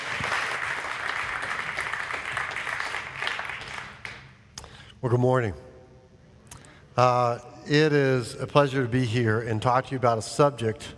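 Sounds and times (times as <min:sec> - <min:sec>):
audience applause welcoming a speaker: 0:00.0 - 0:04.3
speech: 0:05.0 - 0:05.6, 0:07.0 - 0:10.9.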